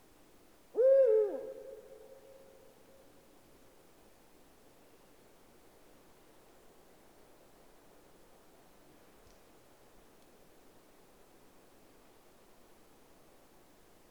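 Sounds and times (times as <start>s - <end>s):
Eurasian eagle-owl deep hoots: 0.8s - 2.2s.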